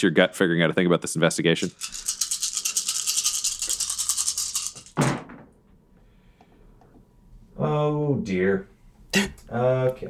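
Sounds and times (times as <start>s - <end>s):
speech: 0.0s - 2.2s, 8.1s - 10.0s
handful of dice rolling: 1.6s - 5.0s.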